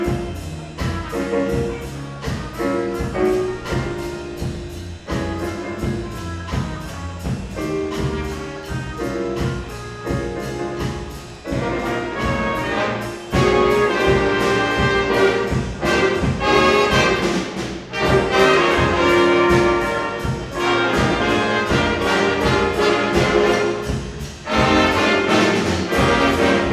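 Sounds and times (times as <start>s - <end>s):
jazz blues music: 0.0s - 26.7s.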